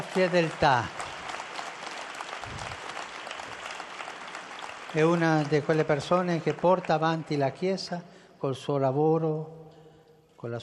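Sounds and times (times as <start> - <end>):
audience applause: 0.0 - 7.8
speech: 0.2 - 1.0, 4.9 - 9.6, 10.4 - 10.6.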